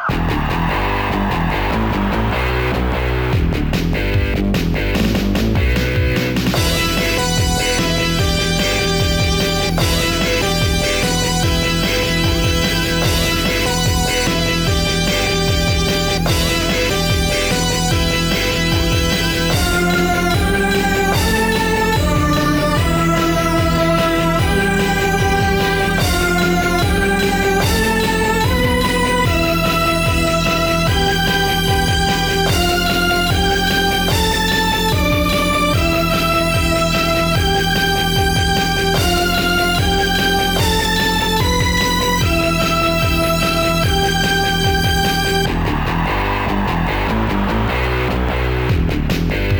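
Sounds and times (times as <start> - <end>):
guitar rumba music: 0.1 - 49.5.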